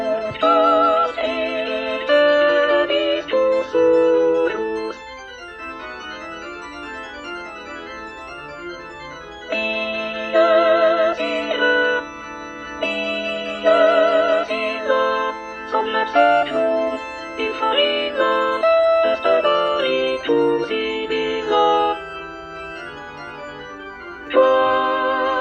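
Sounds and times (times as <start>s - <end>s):
soprano singing: 0.0s - 5.0s, 9.5s - 22.2s, 24.3s - 25.3s.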